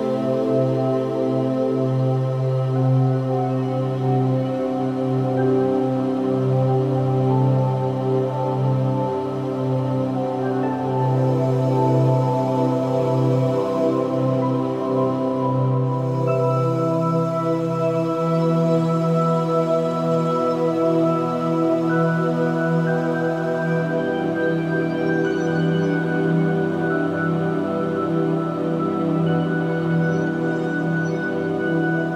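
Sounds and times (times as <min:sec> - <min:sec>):
sauna and massage relaxation music: 0:00.0 - 0:32.1.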